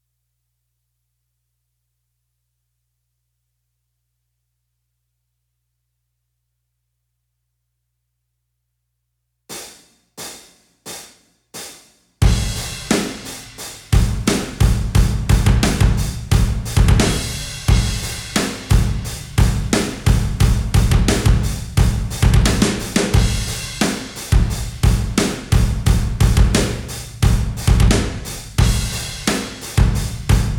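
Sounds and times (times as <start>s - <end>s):
drums: 9.5s - 30.5s.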